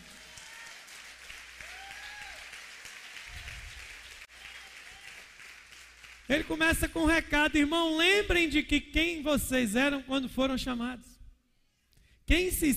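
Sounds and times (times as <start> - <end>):
crowd applauding: 0.0 - 6.6
speech: 6.3 - 11.1, 12.3 - 12.7.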